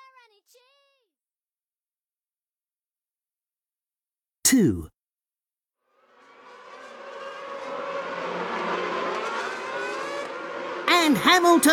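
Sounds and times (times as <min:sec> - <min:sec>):
speech: 0:04.4 - 0:04.9, 0:11.1 - 0:11.7
race car engine roaring as it passes: 0:06.0 - 0:11.7.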